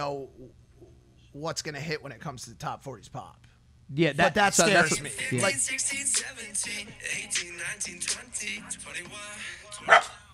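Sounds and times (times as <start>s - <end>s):
speech: 0.0s - 0.6s, 1.3s - 10.2s
dog barking with short sharp yappy barks: 9.9s - 10.2s.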